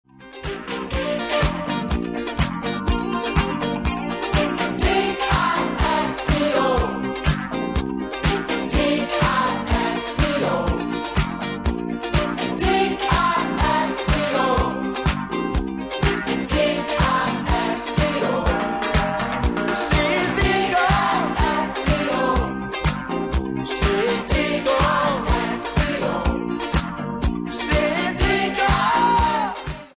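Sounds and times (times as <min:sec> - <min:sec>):
disco music: 0:00.4 - 0:29.9.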